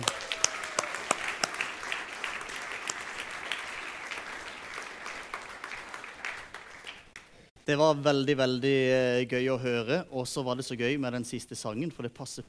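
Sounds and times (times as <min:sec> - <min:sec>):
audience applause for the choir: 0:00.0 - 0:07.2
speech: 0:07.7 - 0:12.4.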